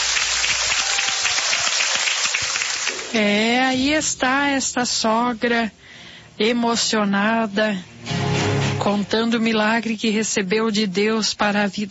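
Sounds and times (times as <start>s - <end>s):
crowd applauding: 0.0s - 3.2s
speech: 3.1s - 8.2s, 8.8s - 11.8s.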